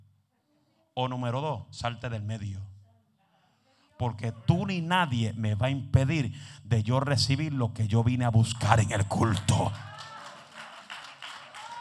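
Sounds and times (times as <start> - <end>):
speech: 1.0 - 2.8, 4.0 - 10.1
audience clapping: 9.1 - 11.7.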